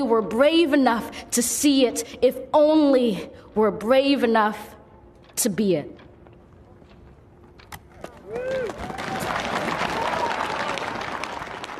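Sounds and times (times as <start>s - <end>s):
speech: 0.0s - 4.8s, 5.4s - 6.0s
large audience applause: 8.0s - 11.7s
whoops and cheers: 8.1s - 11.3s.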